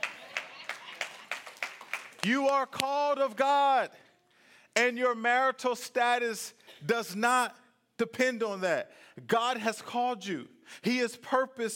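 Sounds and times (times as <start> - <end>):
audience clapping: 0.0 - 4.2
speech: 2.2 - 4.0, 4.8 - 11.7.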